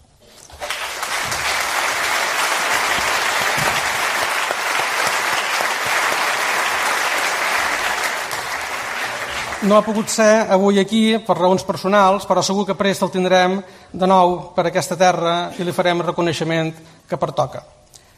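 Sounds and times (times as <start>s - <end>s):
audience applause: 0.6s - 10.2s
speech: 9.6s - 17.8s.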